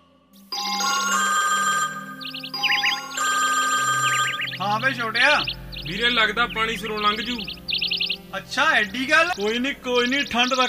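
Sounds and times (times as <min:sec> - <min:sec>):
telephone ringtone during a phone call: 0:00.5 - 0:05.5
speech: 0:04.8 - 0:07.6, 0:08.3 - 0:10.6.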